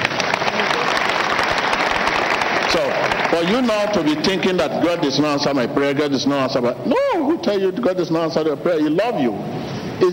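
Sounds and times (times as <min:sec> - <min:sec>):
crowd clapping: 0:00.0 - 0:04.7
speech: 0:02.7 - 0:10.1.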